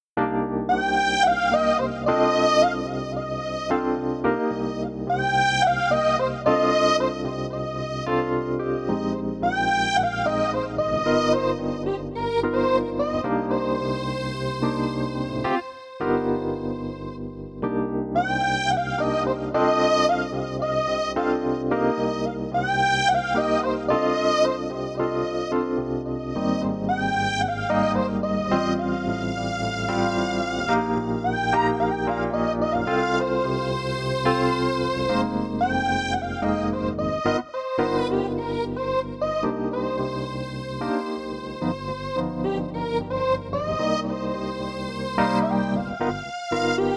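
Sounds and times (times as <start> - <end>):
synth lead: 0.2 - 46.9.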